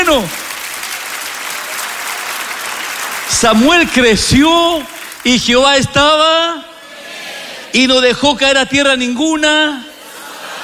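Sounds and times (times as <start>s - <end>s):
audience applause: 0.0s - 5.5s
speech: 0.1s - 0.4s, 3.3s - 6.7s, 7.7s - 9.9s
laughter: 9.9s - 10.6s.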